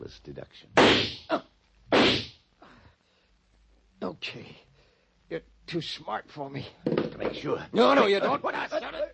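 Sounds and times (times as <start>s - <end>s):
speech: 0.1s - 1.4s, 4.2s - 4.6s, 5.3s - 9.1s
radio drama gunshot fired into bedding under bed covers: 0.8s - 1.2s, 1.9s - 2.3s
thumps: 6.8s - 7.5s.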